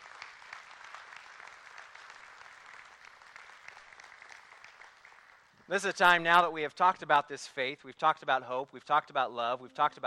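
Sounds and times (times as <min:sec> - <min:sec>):
crowd applause: 0:00.0 - 0:05.5
speech: 0:05.7 - 0:10.0.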